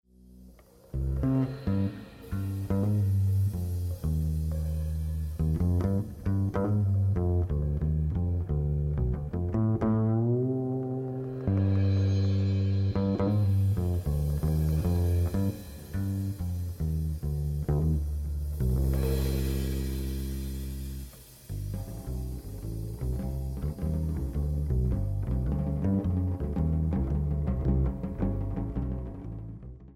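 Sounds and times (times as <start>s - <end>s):
folk-like music: 0.6s - 29.9s.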